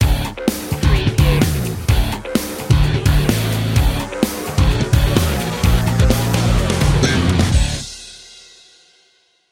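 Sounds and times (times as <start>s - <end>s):
music stinger: 0.0s - 8.3s.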